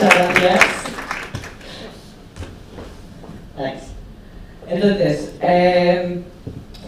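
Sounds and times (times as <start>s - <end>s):
round of applause: 0.0s - 1.9s
speech: 4.8s - 6.0s.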